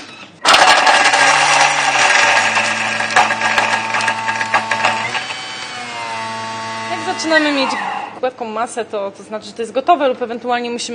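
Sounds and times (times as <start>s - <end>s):
blender blending chickpeas: 0.4s - 8.2s
speech: 7.2s - 10.9s.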